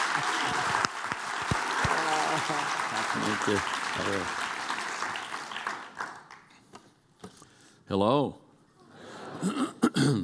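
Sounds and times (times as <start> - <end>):
audience applause welcoming a speaker onto the stage: 0.0 - 6.5
speech: 2.5 - 4.4, 7.9 - 8.4, 9.4 - 10.2.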